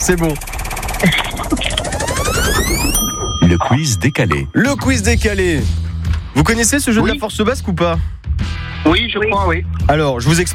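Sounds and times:
speech: 0:00.0 - 0:01.7, 0:02.7 - 0:10.5
spinning game wheel ratchet clicking: 0:00.0 - 0:03.5.

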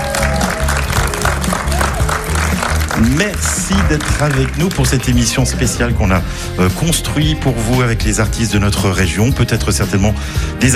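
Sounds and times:
audience applause at Centre culturel Jean Gagnon: 0:00.0 - 0:05.6
speech: 0:03.0 - 0:10.7.

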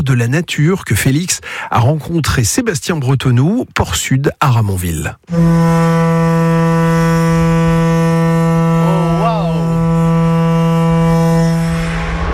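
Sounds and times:
speech: 0:00.0 - 0:06.3
large ship foghorn blast: 0:05.3 - 0:12.3.

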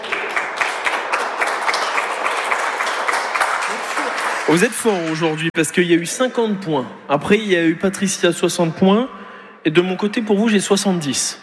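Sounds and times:
crowd applause: 0:00.0 - 0:05.5
speech: 0:04.5 - 0:11.4.

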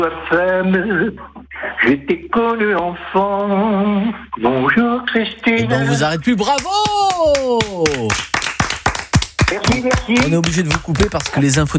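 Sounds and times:
speech: 0:00.0 - 0:08.4, 0:09.5 - 0:11.7
hand claps from interns at a regional radio station in Occitanie: 0:06.4 - 0:11.7.

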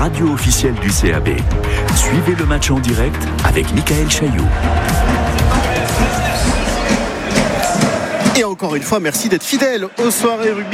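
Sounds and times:
speech: 0:00.0 - 0:05.6, 0:08.4 - 0:10.7
rugby supporters' drums: 0:00.0 - 0:10.7
travelling Brive rugby supporters roaring at an away match in Agen: 0:04.3 - 0:08.6, 0:09.4 - 0:10.7.

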